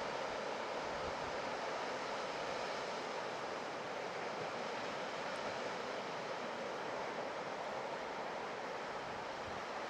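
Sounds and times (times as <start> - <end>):
diffuse sound of the sea on an ocean beach: 0.0 - 9.8.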